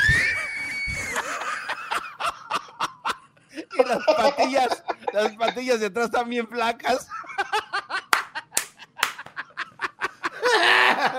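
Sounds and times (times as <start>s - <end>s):
sustained high-pitched laugh: 0.0s - 5.6s, 7.1s - 11.1s
breathy laughter: 0.7s - 5.6s, 9.4s - 11.1s
speech: 3.9s - 7.2s
sharp hand claps: 8.1s - 9.4s.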